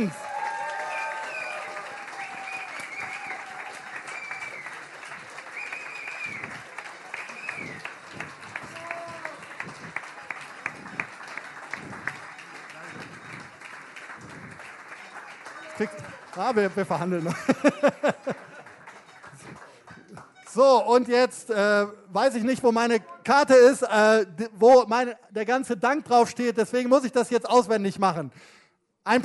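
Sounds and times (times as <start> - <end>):
speech: 0.0 - 0.2, 15.8 - 18.5, 20.6 - 29.2
audience applause: 0.0 - 20.6
laughter: 15.8 - 19.8.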